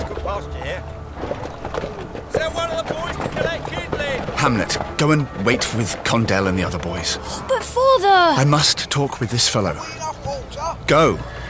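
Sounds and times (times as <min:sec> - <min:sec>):
horses' hooves clip-clopping as a cart stops: 0:00.0 - 0:06.6
speech: 0:04.4 - 0:10.0, 0:10.7 - 0:11.4.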